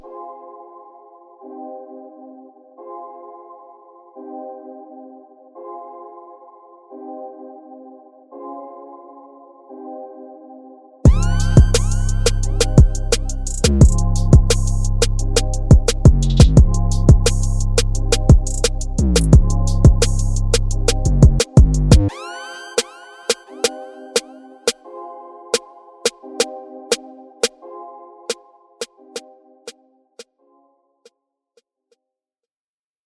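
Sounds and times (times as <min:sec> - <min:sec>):
instrumental music: 0:11.0 - 0:29.8.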